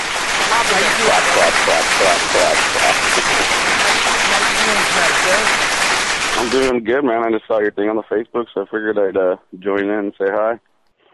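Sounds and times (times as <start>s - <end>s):
dense applause of many hands clapping: 0.0s - 6.7s
laughter: 0.4s - 5.5s, 6.4s - 10.6s
speech: 0.7s - 5.6s, 6.4s - 10.7s.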